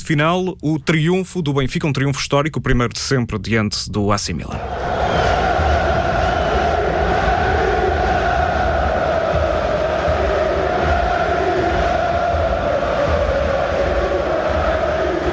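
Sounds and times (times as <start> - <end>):
speech: 0.1 - 5.0
football fans celebrating in San Siro stadium stands: 4.6 - 15.3.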